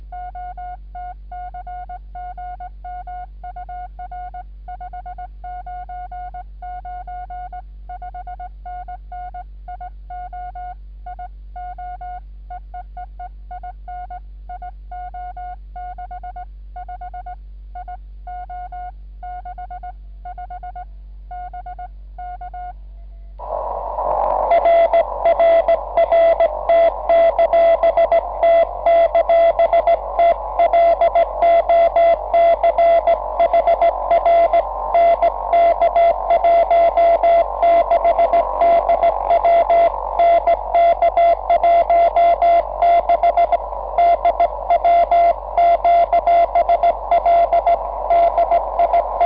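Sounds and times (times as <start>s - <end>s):
CW Morse code beeps: 23.4s - 49.2s.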